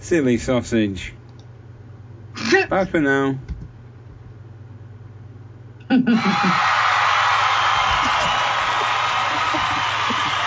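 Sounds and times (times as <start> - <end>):
speech: 0.0 - 1.2, 2.6 - 3.5, 5.9 - 6.8
crowd laughing and cheering: 6.1 - 10.4.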